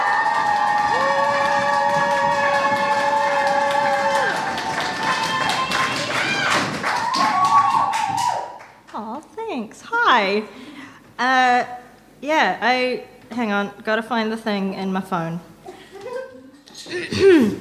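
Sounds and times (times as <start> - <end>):
whoops and shouts: 0.0 - 8.6
audience applause: 0.0 - 8.8
speech: 10.2 - 10.6, 11.2 - 15.5, 17.1 - 17.5.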